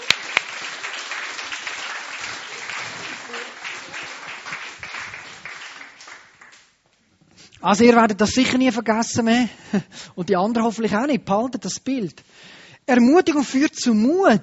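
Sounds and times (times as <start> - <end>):
audience giving warm applause: 0.0 - 6.7
speech: 7.6 - 14.4.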